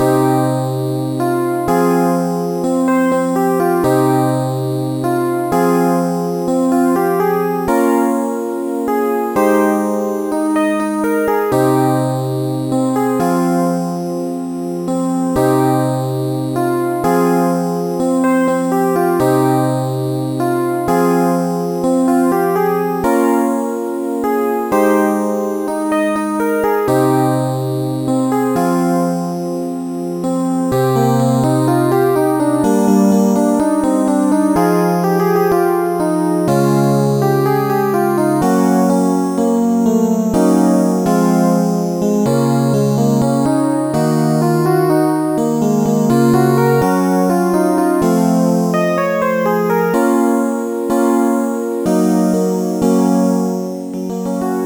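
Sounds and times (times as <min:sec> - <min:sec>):
piano piece: 0:00.0 - 0:54.6.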